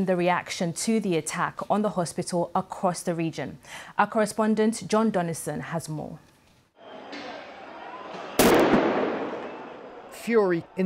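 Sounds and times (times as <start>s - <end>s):
speech: 0.0s - 6.3s, 10.3s - 10.8s
sound grenade bang during protest in Ramallah, West Bank: 8.4s - 9.8s.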